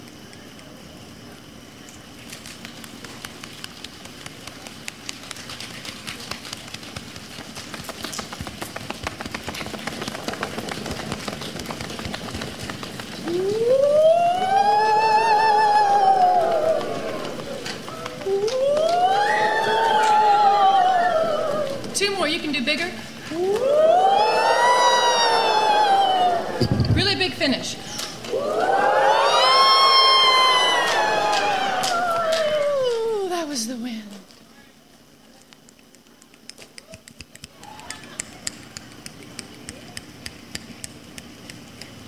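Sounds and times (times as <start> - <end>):
group of voices howling like the wind: 10.1 - 33.6.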